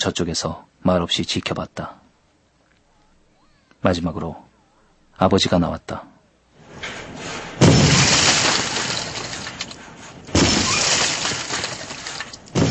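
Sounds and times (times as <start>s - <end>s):
speech: 0.0s - 2.0s, 3.8s - 4.4s, 5.2s - 6.1s
crumbling rattling debris: 6.6s - 12.6s
sledgehammers smashing a house: 6.6s - 12.6s.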